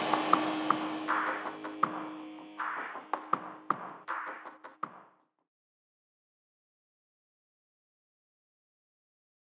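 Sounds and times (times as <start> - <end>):
33-37 Hz low bass tone: 0.0 - 4.1.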